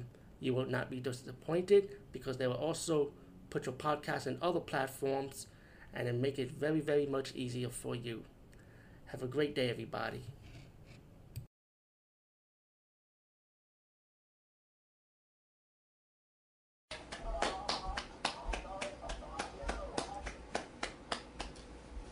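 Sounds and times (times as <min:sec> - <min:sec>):
speech: 0:00.0 - 0:08.3, 0:09.1 - 0:10.4
sharp hand claps: 0:16.9 - 0:21.8.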